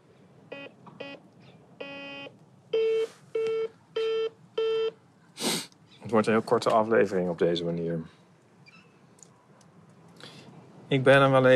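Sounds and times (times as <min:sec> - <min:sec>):
modern intercom door panel beeping: 0:01.8 - 0:05.0
speech: 0:06.1 - 0:08.2, 0:10.9 - 0:11.5.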